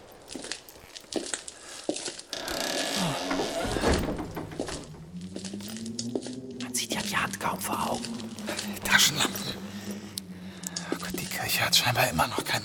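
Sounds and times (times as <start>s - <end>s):
heavy church door grinding creak as forced open: 2.3s - 10.1s
low groaning drone: 2.4s - 12.1s
knocks and thuds on heavy church door: 3.1s - 5.2s
speech: 7.4s - 9.7s, 11.6s - 12.6s.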